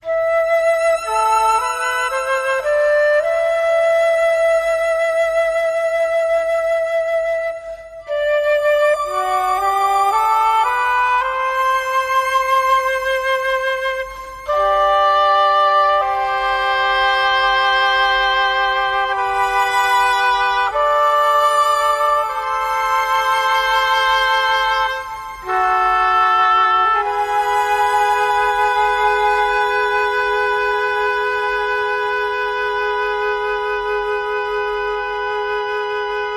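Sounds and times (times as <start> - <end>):
violin: 0.0 - 36.3
woodwinds: 0.0 - 36.3.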